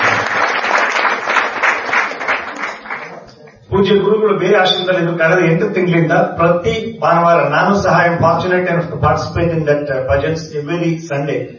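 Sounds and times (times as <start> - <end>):
audience clapping at a devotional gathering welcoming a guru: 0.0 - 3.7
speech: 3.8 - 11.5.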